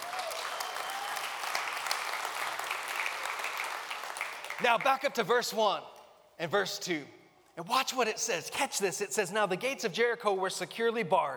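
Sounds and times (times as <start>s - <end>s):
audience clapping: 0.0s - 5.1s
speech: 4.6s - 11.3s.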